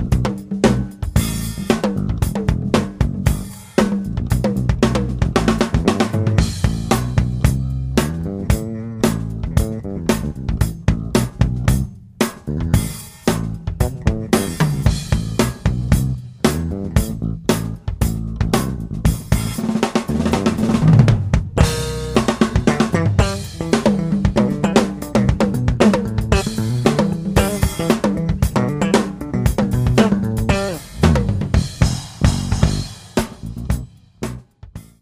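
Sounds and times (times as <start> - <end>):
backing riff: 0.0 - 34.4.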